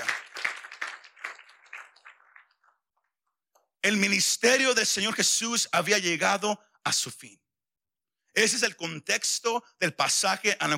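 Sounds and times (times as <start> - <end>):
audience applause: 0.0 - 2.8
speech: 3.8 - 7.4, 8.4 - 10.7.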